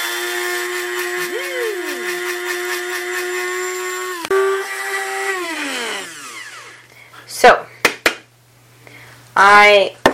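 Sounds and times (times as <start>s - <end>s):
small electric grinder powdering pine needles: 0.0s - 6.9s
speech: 9.7s - 10.0s.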